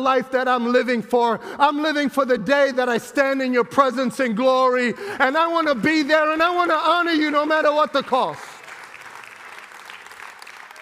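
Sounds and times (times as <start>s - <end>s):
speech: 0.0s - 8.5s
audience clapping: 5.8s - 10.7s.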